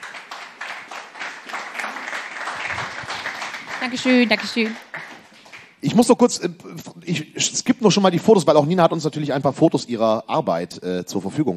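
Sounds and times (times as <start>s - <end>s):
audience applause: 0.0s - 5.9s
speech: 3.8s - 4.9s, 5.9s - 11.5s.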